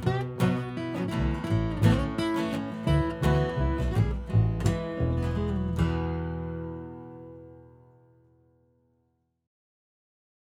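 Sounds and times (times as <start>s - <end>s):
acoustic music: 0.0s - 8.3s.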